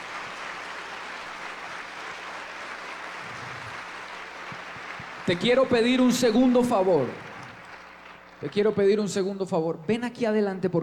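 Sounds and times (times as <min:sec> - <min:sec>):
audience applause: 0:00.0 - 0:08.8
speech: 0:05.3 - 0:07.3, 0:08.4 - 0:10.8.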